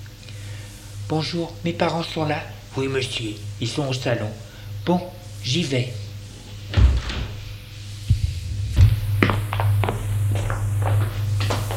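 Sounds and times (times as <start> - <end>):
low hum: 0.0 - 11.7
speech: 1.1 - 6.0
door opening: 6.7 - 7.4
footsteps: 8.0 - 11.7.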